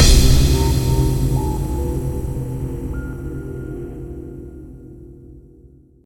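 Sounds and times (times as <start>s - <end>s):
musical stinger: 0.0s - 5.2s.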